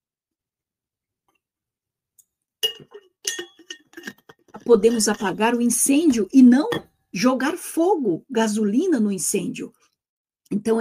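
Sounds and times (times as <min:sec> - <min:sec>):
glass clinking while drinking water: 0:02.6 - 0:05.4, 0:06.6 - 0:07.0
speech: 0:04.7 - 0:09.8, 0:10.5 - 0:10.7.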